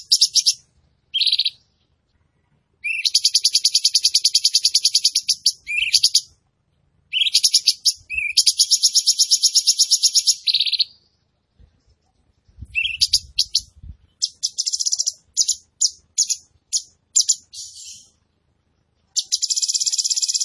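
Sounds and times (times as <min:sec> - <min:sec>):
Tembakan bird singing vigorously: 0:00.0 - 0:06.4, 0:07.1 - 0:11.3, 0:12.1 - 0:20.4.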